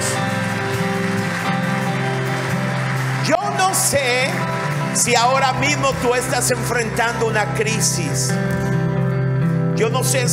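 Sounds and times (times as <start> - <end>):
audience applauding: 0.0 - 7.3
speech: 3.9 - 8.8, 9.8 - 10.3.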